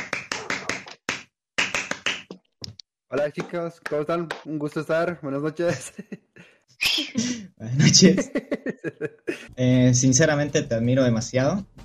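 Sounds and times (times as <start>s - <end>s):
audience applause: 0.0s - 1.0s
speech: 3.1s - 6.2s, 7.2s - 11.8s
laughter: 5.7s - 6.4s, 7.2s - 9.5s.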